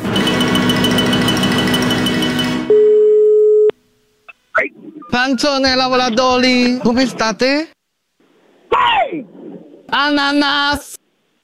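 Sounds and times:
telephone line tone while calling: 0.0s - 3.8s
speech: 5.2s - 7.8s, 9.9s - 11.0s.

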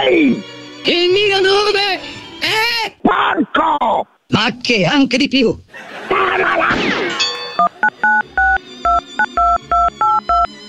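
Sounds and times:
speech: 0.1s - 2.1s, 3.6s - 6.9s
laughter: 5.7s - 8.6s
touch-tone telephone dialing beeps: 7.4s - 10.5s.

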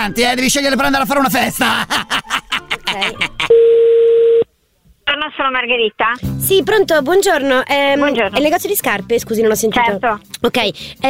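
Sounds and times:
speech: 0.0s - 3.2s, 5.4s - 11.0s
laughter: 1.4s - 3.5s
telephone line tone while placing a call: 3.5s - 4.5s.

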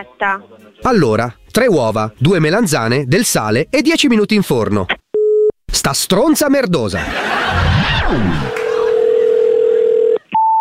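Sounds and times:
speech: 0.0s - 5.0s, 5.7s - 8.6s
telephone tone after call hung up: 5.2s - 5.5s, 8.4s - 10.5s
laughter: 6.9s - 9.5s.

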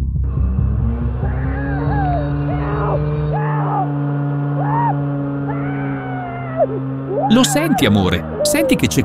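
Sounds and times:
chainsaw running: 0.2s - 9.0s
speech: 7.5s - 9.0s.

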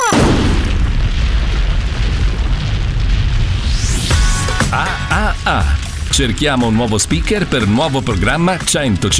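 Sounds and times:
loud explosion with heavy low rumbling roar: 0.1s - 7.5s
brief swept tone: 3.6s - 8.2s
speech: 5.5s - 9.1s.

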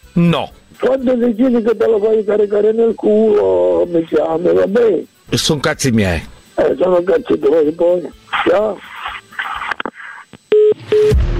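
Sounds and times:
speech: 0.2s - 8.9s
telephone dialing tones: 9.4s - 11.1s.

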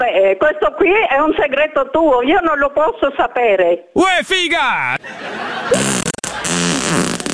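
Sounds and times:
speech: 0.1s - 6.6s
laughter: 4.9s - 6.6s
fart on demand: 5.7s - 7.3s.

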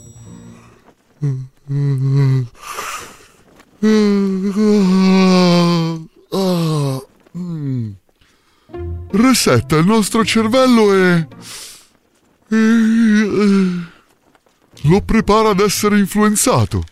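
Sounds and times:
person yawning: 1.2s - 2.5s, 3.8s - 8.0s
speech: 1.2s - 2.6s, 9.2s - 11.6s, 12.5s - 12.8s, 14.9s - 16.9s.

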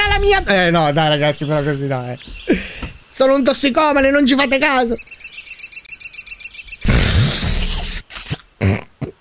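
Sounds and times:
speech: 0.2s - 2.6s, 3.2s - 5.2s, 8.6s - 8.8s
voice imitating a budgerigar chirping: 4.9s - 8.4s.

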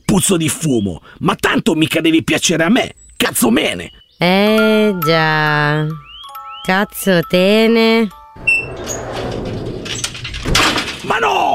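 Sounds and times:
speech: 0.1s - 9.1s
sliding door shutting: 8.4s - 11.2s.

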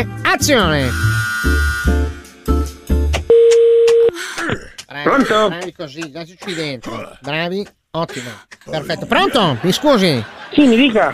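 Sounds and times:
speech: 0.0s - 2.0s, 5.0s - 11.1s
steady mid-pitched telephone beep while placing a phone call: 3.3s - 4.1s
laughter: 8.0s - 11.1s.

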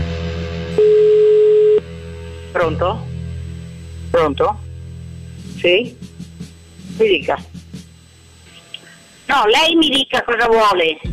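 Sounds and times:
telephone tone while calling back: 0.8s - 1.8s
speech: 2.6s - 3.1s, 4.1s - 4.6s, 5.6s - 6.1s, 7.0s - 7.5s, 9.3s - 11.1s.

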